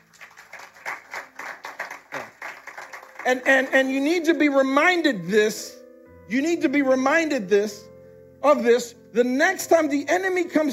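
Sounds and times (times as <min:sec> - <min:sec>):
audience clapping: 0:00.0 - 0:04.0
speech: 0:03.2 - 0:10.7.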